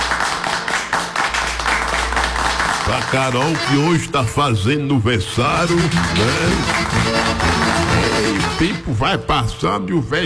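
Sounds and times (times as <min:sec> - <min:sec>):
quick hand claps for a daughter's birthday: 0:00.0 - 0:04.0, 0:05.7 - 0:08.6
speech: 0:02.9 - 0:07.4, 0:08.3 - 0:10.2.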